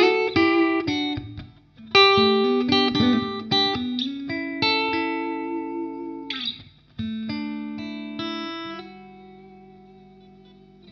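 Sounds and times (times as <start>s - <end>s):
clean electric guitar with both pickups in parallel: 0.0s - 10.9s.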